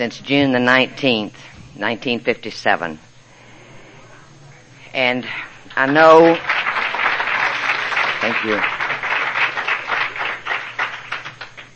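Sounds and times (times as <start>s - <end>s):
speech: 0.0s - 3.1s, 5.0s - 6.6s, 8.2s - 8.8s
audience applause: 6.1s - 11.7s.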